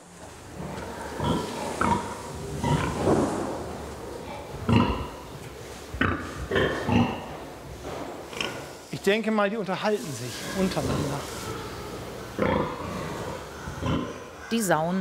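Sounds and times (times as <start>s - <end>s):
sows grunting in a farrowing barn: 0.4s - 7.6s, 10.3s - 15.0s
speech: 9.0s - 11.5s, 14.6s - 15.0s.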